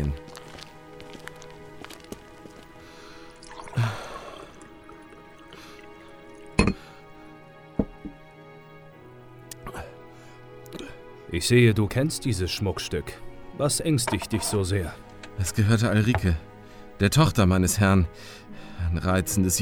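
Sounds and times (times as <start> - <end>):
water poured into a glass in a kitchen: 3.2 - 6.7
speech: 11.3 - 19.6.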